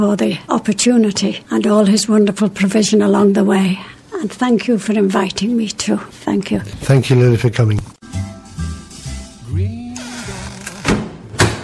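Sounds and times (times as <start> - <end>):
speech: 0.0 - 8.0
door creaking: 9.8 - 11.6
door shutting with dull thuds: 10.4 - 11.6.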